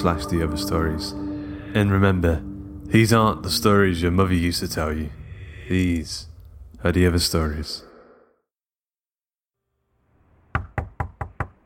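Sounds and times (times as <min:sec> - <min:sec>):
speech: 0:00.0 - 0:07.9
sharp knocks on a door: 0:10.5 - 0:11.6.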